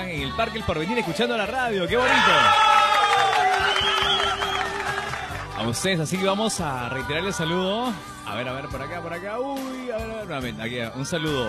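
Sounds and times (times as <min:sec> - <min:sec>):
speech: 0:00.1 - 0:02.7, 0:05.6 - 0:11.4
crowd noise: 0:00.7 - 0:11.4
crowd applause: 0:02.2 - 0:05.8.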